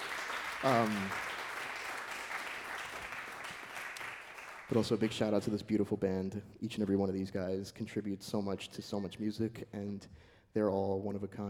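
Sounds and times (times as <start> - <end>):
crowd applauding: 0.0 - 4.9
speech: 0.6 - 1.3, 4.7 - 11.4.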